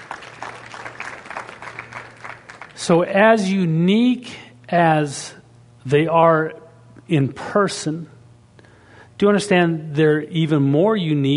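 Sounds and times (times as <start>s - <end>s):
church congregation clapping hands: 0.0s - 2.9s
speech: 2.8s - 8.1s, 9.2s - 11.3s.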